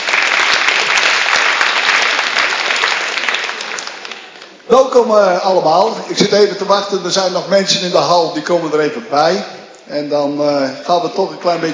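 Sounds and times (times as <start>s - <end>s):
audience applause: 0.0s - 4.6s
speech: 4.7s - 11.7s.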